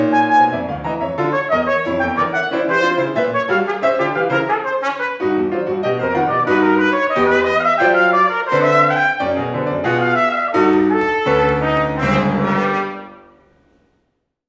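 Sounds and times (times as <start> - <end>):
trombone: 0.0 - 13.5
piano: 0.0 - 14.0.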